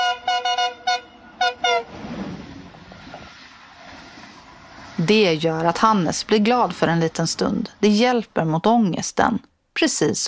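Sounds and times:
train horn honking at station platform: 0:00.0 - 0:02.3
speech: 0:05.0 - 0:10.2.

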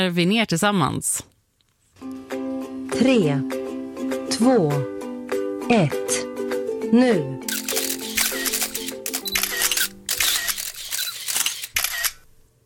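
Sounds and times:
speech: 0:00.0 - 0:01.3, 0:03.0 - 0:03.6, 0:04.4 - 0:04.9, 0:05.7 - 0:06.3, 0:06.9 - 0:07.4
rapid camera shutter clicks taking selfies: 0:07.5 - 0:12.2.

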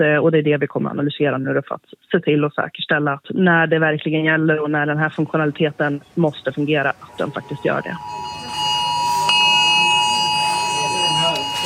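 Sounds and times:
speech: 0:00.0 - 0:08.3
murmur of people: 0:06.0 - 0:11.6
mobile phone emergency alert tone: 0:06.9 - 0:11.6.

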